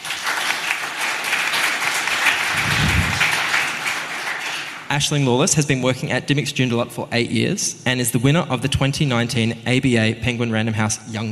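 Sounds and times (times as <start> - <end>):
audience applause welcoming a speaker at a bookselling event: 0.0 - 4.9
speech: 4.9 - 11.3.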